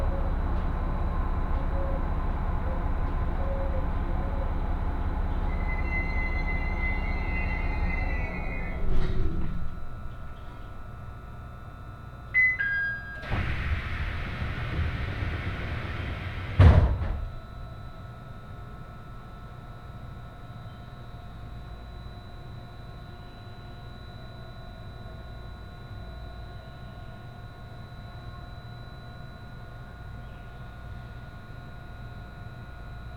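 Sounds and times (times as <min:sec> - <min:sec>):
hybrid HB-E210 diesel railcar engine hum: 0:00.0 - 0:33.1
railcar door thumps: 0:13.3 - 0:17.4.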